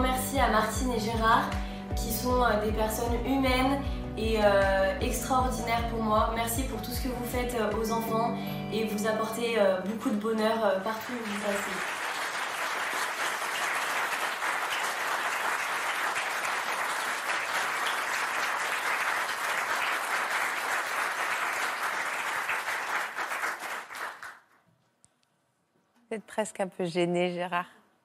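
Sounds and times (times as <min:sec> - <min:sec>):
speech: 0:00.4 - 0:12.0, 0:26.2 - 0:27.8
sustained applause from a large audience: 0:10.9 - 0:24.4.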